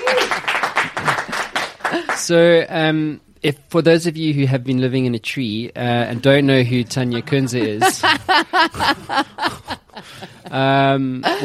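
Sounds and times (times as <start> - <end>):
audience applause: 0.0 - 2.2
speech: 2.2 - 11.4
laughter: 6.6 - 11.4.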